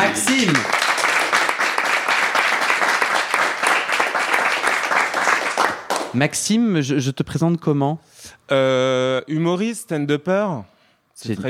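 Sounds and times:
audience applause: 0:00.0 - 0:06.2
speech: 0:06.2 - 0:11.4.

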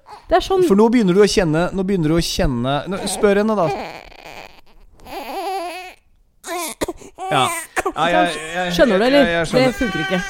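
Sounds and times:
baby girl crying from hunger: 0:00.0 - 0:00.7, 0:02.9 - 0:10.2
speech: 0:00.3 - 0:04.0, 0:07.4 - 0:10.2.

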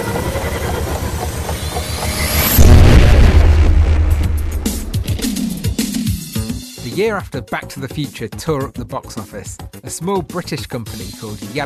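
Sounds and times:
thin high whine of time machine controls firing up: 0:00.0 - 0:06.1
time machine controls firing up with heavy low rumble and boom: 0:01.9 - 0:06.1
speech: 0:07.0 - 0:11.6.

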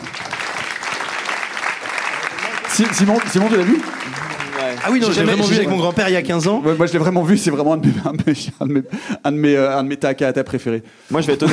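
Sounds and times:
audience applause: 0:00.0 - 0:06.1
speech: 0:02.7 - 0:04.0, 0:04.6 - 0:11.5.

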